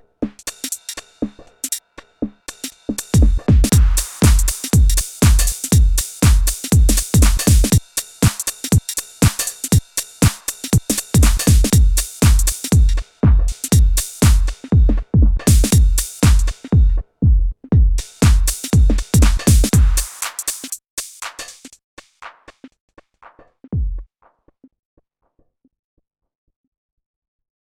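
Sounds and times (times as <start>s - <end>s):
Yamaha TG500 synthesizer drum kit sounds: 2.9s - 24.4s.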